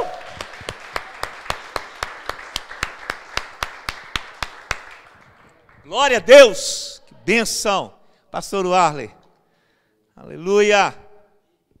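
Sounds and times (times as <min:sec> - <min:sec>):
audience clapping in a steady fast rhythm: 0:00.0 - 0:06.5
speech: 0:05.9 - 0:09.2, 0:10.2 - 0:11.0.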